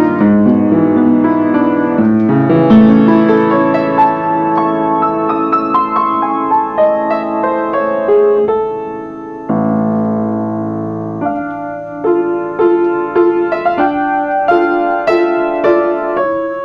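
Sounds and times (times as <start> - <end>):
piano playing before and after tuning: 0.0 - 16.6.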